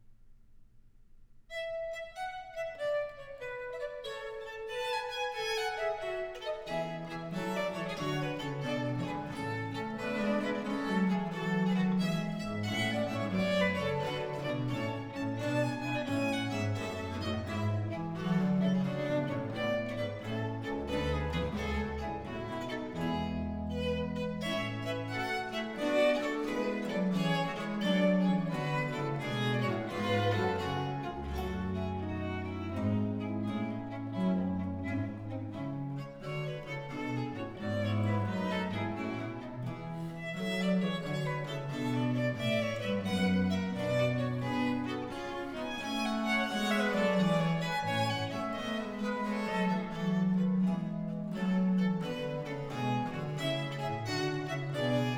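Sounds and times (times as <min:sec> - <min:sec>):
trio sonata in B-flat major allegro: 0:01.5 - 0:55.1.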